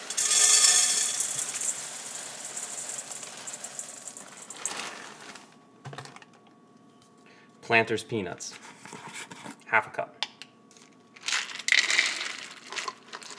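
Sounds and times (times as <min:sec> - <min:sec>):
Rice Krispies cereal pouring into a bowl: 0:00.0 - 0:05.6, 0:11.3 - 0:13.3
speech: 0:07.7 - 0:08.7, 0:09.7 - 0:10.0.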